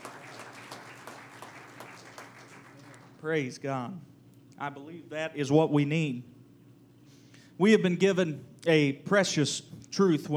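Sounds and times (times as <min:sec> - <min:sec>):
audience clapping hands: 0:00.0 - 0:03.4
speech: 0:03.2 - 0:06.3, 0:07.6 - 0:10.3.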